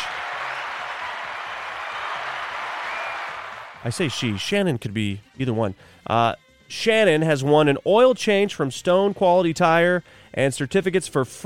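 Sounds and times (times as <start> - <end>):
applause: 0.0 - 4.5
speech: 3.8 - 11.4.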